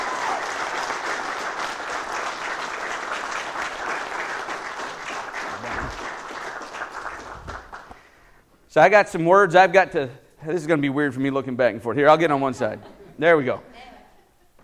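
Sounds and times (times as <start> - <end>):
audience applause: 0.0 - 8.1
speech: 8.7 - 13.7.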